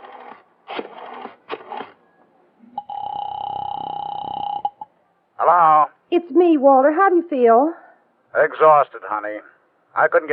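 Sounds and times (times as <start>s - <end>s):
telephone steady electronic tone: 2.8s - 4.8s
speech: 5.4s - 7.8s, 8.4s - 10.3s.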